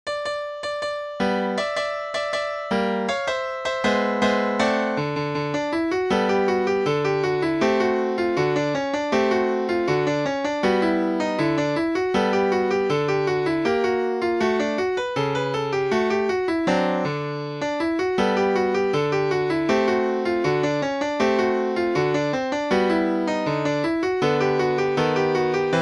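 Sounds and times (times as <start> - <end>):
samba recital piece on piano: 0.1 - 25.8.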